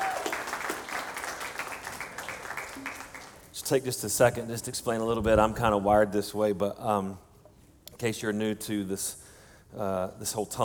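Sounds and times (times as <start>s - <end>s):
audience applause: 0.0s - 3.5s
speech: 3.7s - 7.3s, 8.0s - 10.6s.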